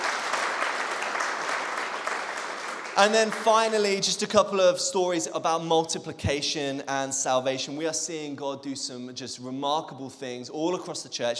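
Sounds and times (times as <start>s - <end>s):
audience round of applause: 0.0s - 3.9s
speech: 3.0s - 11.3s.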